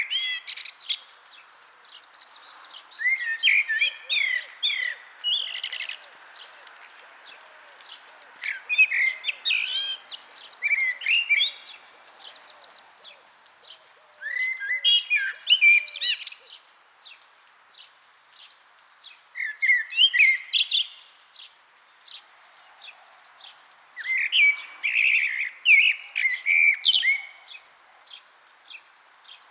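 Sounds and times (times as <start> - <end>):
Common blackbird singing: 0.0 - 1.1, 1.8 - 6.6, 7.3 - 16.6, 19.4 - 21.5, 23.4 - 29.4.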